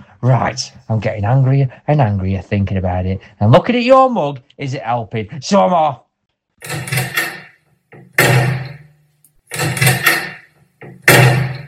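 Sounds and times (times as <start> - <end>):
speech: 0.2 - 6.0
door being rattled and banged: 6.6 - 11.6.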